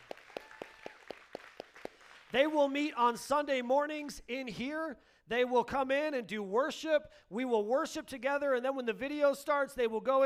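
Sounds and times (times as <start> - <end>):
audience applause: 0.0 - 2.4
speech: 2.3 - 10.2.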